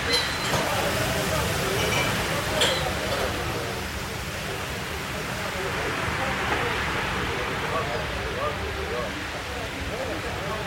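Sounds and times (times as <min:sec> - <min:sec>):
café clinks: 0:00.0 - 0:00.8
café murmur of overlapping voices: 0:00.0 - 0:10.6
ocean waves: 0:00.0 - 0:10.6.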